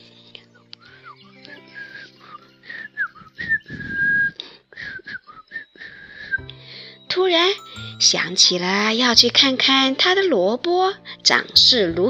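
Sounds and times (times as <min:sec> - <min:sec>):
whistling a tune: 0:00.8 - 0:09.1
speech: 0:07.2 - 0:12.0.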